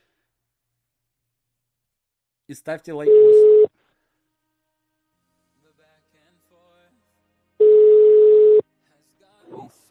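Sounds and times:
speech: 0:02.5 - 0:03.5
telephone dial tone while dialing a number: 0:07.6 - 0:08.6.

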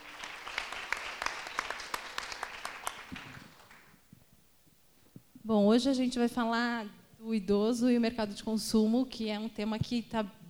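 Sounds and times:
audience applause welcoming guests: 0:00.0 - 0:03.9
speech: 0:05.5 - 0:10.4.

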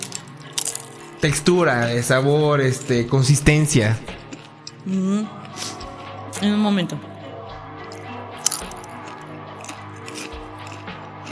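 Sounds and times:
person chewing food: 0:00.0 - 0:01.2, 0:04.1 - 0:06.2, 0:07.7 - 0:11.3
speech: 0:01.2 - 0:04.1, 0:04.8 - 0:05.7, 0:06.4 - 0:07.1.

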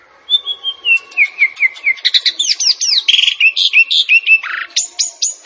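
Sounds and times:
Javan pied starling song with buzzy trills, chatters and whistled notes: 0:00.3 - 0:04.9.

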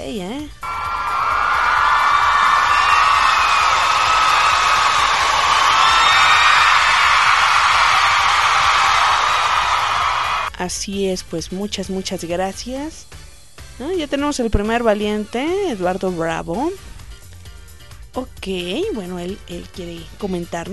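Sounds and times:
speech: 0:00.0 - 0:00.8, 0:10.6 - 0:13.2, 0:13.8 - 0:16.9, 0:18.2 - 0:20.7
crowd cheering and whooping in an ovation: 0:00.6 - 0:10.5.

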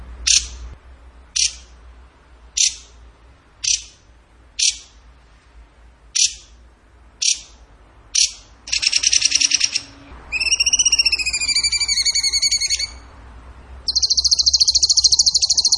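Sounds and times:
bird song: 0:02.6 - 0:03.0, 0:03.6 - 0:04.0, 0:04.6 - 0:05.0, 0:06.2 - 0:06.6, 0:07.2 - 0:07.6, 0:08.2 - 0:13.1, 0:13.9 - 0:15.7.

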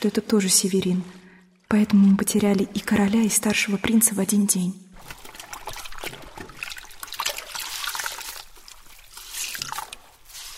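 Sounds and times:
speech: 0:00.0 - 0:05.2
water poured while rinsing hair: 0:05.0 - 0:10.5.

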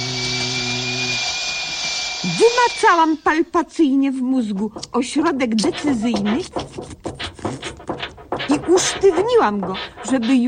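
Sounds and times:
drill boring into a skull: 0:00.0 - 0:02.3
low humming drone: 0:00.0 - 0:02.6
speech: 0:02.3 - 0:07.3, 0:08.5 - 0:10.4.

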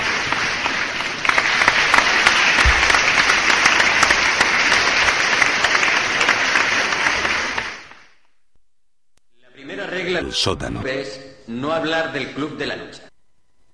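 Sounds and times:
applause on a radio show: 0:00.0 - 0:08.2
speech: 0:10.3 - 0:13.1.

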